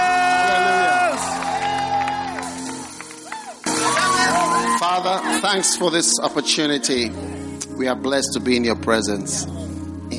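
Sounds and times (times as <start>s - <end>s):
audience clapping and cheering: 0.0s - 5.8s
speech: 5.0s - 9.7s.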